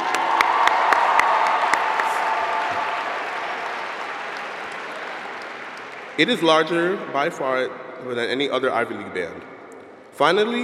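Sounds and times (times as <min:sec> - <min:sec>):
audience applause for marching band: 0:00.0 - 0:06.4
speech: 0:06.2 - 0:09.5, 0:10.2 - 0:10.6.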